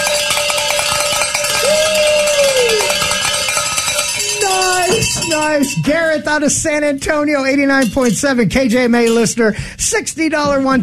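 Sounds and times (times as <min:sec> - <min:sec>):
Share-a-thon bell being rung in celebration: 0:00.0 - 0:06.4
speech: 0:05.3 - 0:10.8.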